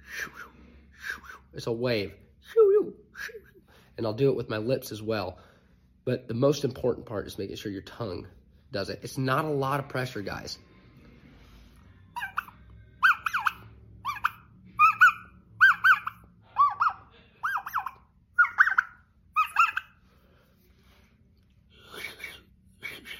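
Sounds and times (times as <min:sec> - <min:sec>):
speech: 0:01.6 - 0:10.7
turkey call imitating a hen clucking: 0:12.2 - 0:20.0.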